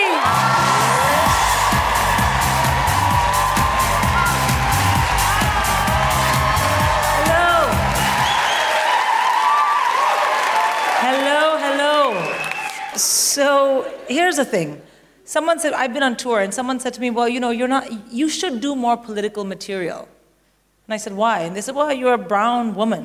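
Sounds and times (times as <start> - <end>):
audience high whoops: 0.0 - 11.1, 12.0 - 13.0
audience clapping and cheering for a stand-up comedian: 0.0 - 13.2
speech: 14.3 - 20.2, 20.9 - 23.0.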